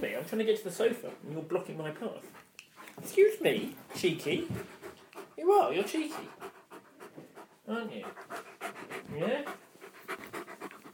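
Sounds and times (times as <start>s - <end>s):
dog panting: 0.1s - 10.9s
speech: 0.2s - 4.8s, 5.4s - 6.5s, 7.7s - 8.4s, 9.1s - 9.6s.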